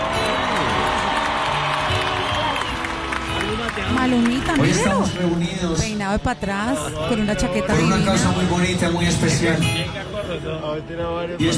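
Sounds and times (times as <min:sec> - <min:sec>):
crowd cheering and whooping: 0:00.0 - 0:05.2
large crowd applause: 0:00.0 - 0:05.9
speech: 0:04.0 - 0:11.5.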